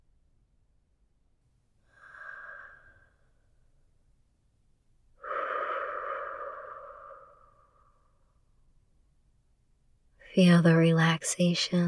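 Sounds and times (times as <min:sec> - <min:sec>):
slow deep breathing during a relaxation exercise: 0:01.8 - 0:03.6, 0:05.2 - 0:08.4
speech: 0:10.4 - 0:11.8.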